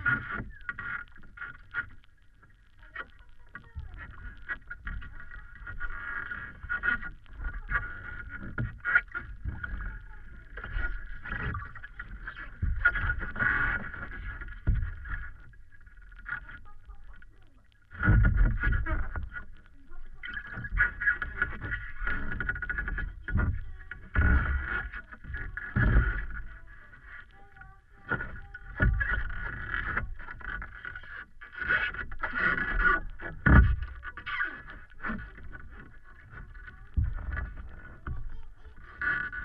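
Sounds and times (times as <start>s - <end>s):
hot tub hot spring water in Iceland: 0.0s - 39.4s.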